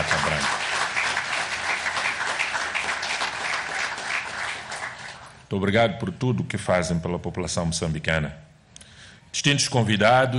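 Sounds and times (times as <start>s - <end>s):
audience applause: 0.0s - 5.4s
speech: 5.5s - 8.4s, 9.4s - 10.3s.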